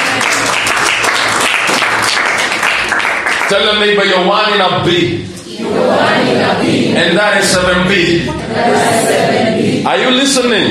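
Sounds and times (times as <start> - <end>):
audience clapping: 0.0 - 4.1
speech: 3.5 - 10.6.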